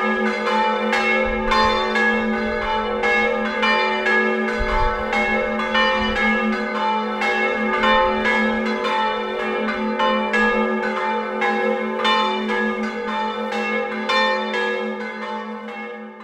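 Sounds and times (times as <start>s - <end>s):
church bells ringing: 0.0s - 16.2s.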